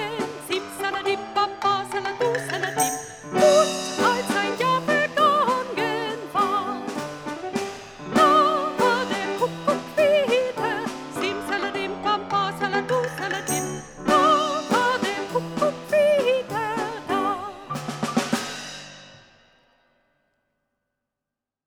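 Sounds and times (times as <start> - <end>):
singing: 0.0 - 7.1, 8.2 - 17.8.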